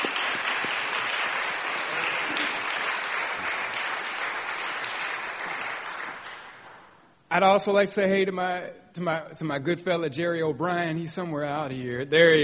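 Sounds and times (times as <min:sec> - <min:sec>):
round of applause: 0:00.0 - 0:07.0
speech: 0:07.3 - 0:12.4.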